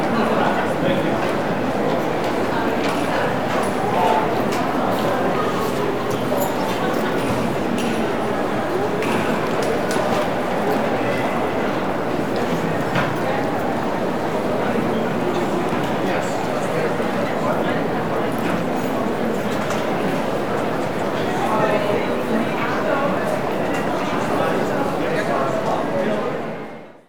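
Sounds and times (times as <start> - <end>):
light crowd walla in a large office lobby: 0.0 - 27.0.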